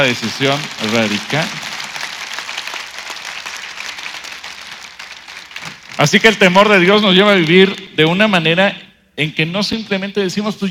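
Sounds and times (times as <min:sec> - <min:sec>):
speech: 0:00.0 - 0:01.6, 0:06.0 - 0:10.6
audience applause: 0:00.0 - 0:07.7.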